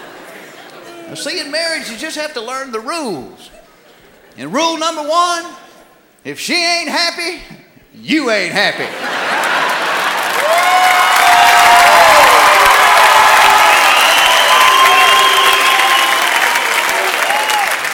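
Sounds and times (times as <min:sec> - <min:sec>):
laughter: 0:00.0 - 0:01.5, 0:03.5 - 0:04.4, 0:08.5 - 0:10.7
speech: 0:01.1 - 0:03.6, 0:04.4 - 0:05.6, 0:06.2 - 0:09.2
audience booing: 0:09.0 - 0:17.9.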